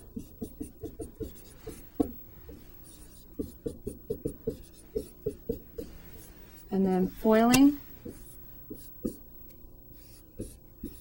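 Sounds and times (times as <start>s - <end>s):
handwriting of a math expression: 0.0s - 6.4s, 10.0s - 10.9s
speech: 6.8s - 7.8s.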